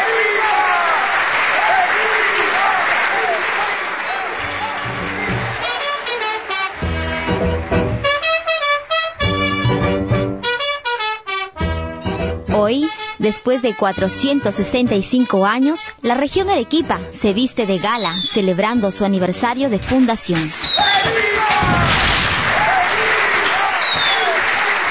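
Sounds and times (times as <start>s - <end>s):
cheering voices: 0.0s - 9.4s, 17.6s - 18.4s, 20.3s - 24.9s
audience clapping: 0.0s - 10.7s, 20.2s - 24.9s
music with bold sustained notes: 4.5s - 17.7s
speech: 13.2s - 22.1s.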